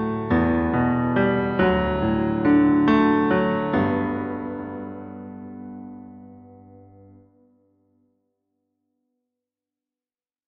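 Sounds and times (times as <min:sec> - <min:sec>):
karaoke acoustic piano instrumental: 0:00.0 - 0:07.5.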